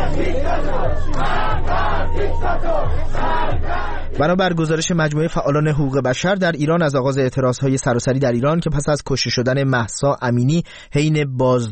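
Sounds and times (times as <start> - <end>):
protesters at a mourning gathering in Iran chanting slogans: 0.0 - 4.6
speech: 4.2 - 11.7.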